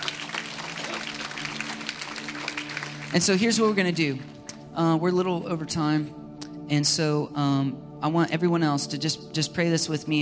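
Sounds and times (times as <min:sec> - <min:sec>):
audience clapping: 0:00.0 - 0:04.6
speech: 0:03.1 - 0:10.1.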